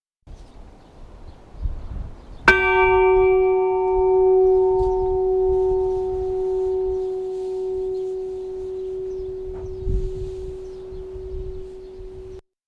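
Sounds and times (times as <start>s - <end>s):
bell ringing: 2.5s - 12.4s.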